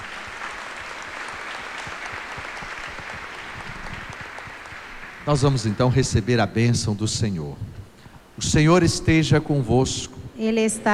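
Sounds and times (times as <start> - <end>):
audience applauding: 0.0 - 6.7
speech: 5.3 - 7.8, 8.4 - 10.9.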